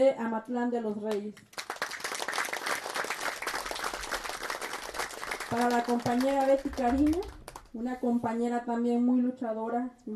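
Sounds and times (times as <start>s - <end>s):
speech: 0.0s - 1.6s, 5.5s - 10.1s
applause: 1.1s - 7.8s.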